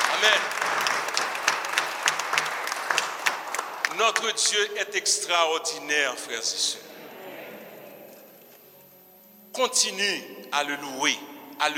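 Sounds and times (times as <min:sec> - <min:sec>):
audience applauding: 0:00.0 - 0:05.2
speech: 0:00.2 - 0:00.7, 0:04.0 - 0:07.0, 0:09.6 - 0:11.7.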